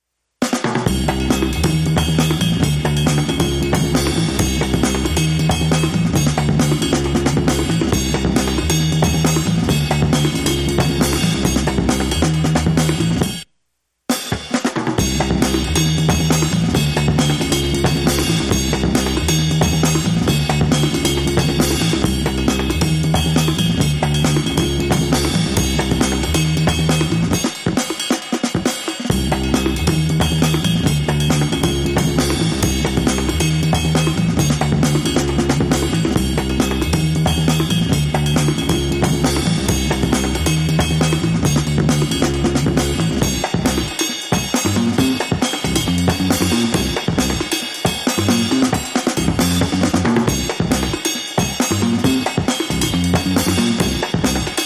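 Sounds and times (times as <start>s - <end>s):
drums: 0.0s - 54.6s
bass: 0.6s - 13.5s, 14.7s - 54.6s.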